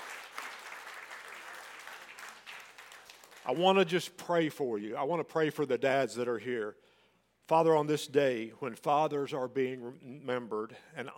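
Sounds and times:
audience applause for fathers: 0:00.0 - 0:03.5
speech: 0:03.4 - 0:06.9, 0:07.5 - 0:11.1.

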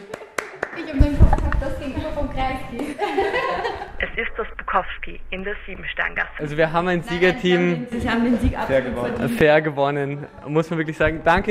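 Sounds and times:
applause: 0:00.0 - 0:01.0
speech: 0:01.8 - 0:11.5
laughter: 0:02.7 - 0:04.2.

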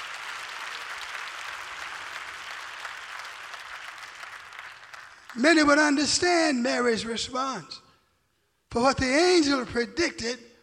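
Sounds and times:
audience clapping hands: 0:00.0 - 0:06.2
speech: 0:05.4 - 0:07.8, 0:08.7 - 0:10.5.

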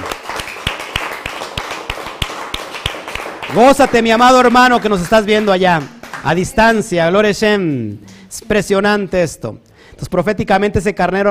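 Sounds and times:
audience applause: 0:00.0 - 0:06.9
speech: 0:03.5 - 0:11.2.

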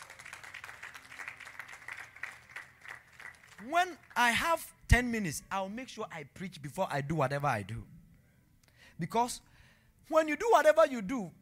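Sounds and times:
audience clapping: 0:00.0 - 0:04.4
speech: 0:03.6 - 0:07.9, 0:09.0 - 0:09.5, 0:10.1 - 0:11.4.

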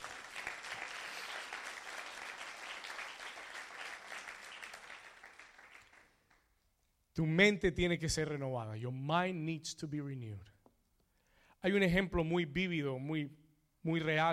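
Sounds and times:
audience applauding loudly: 0:00.0 - 0:06.4
speech: 0:07.2 - 0:10.5, 0:11.6 - 0:14.3.

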